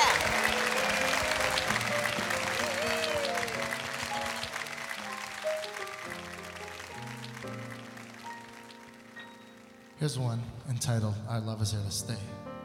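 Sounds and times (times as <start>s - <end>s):
audience applause welcoming a singer at a live variety show: 0.0s - 9.8s
speech: 10.0s - 12.4s.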